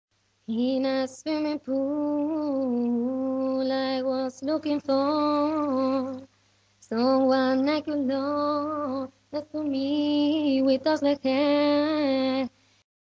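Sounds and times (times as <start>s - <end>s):
vocals: 0.4s - 12.6s.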